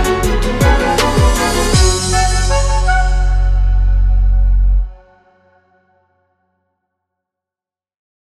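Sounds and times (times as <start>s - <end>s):
background hip hop music for video vlog: 0.0s - 5.4s.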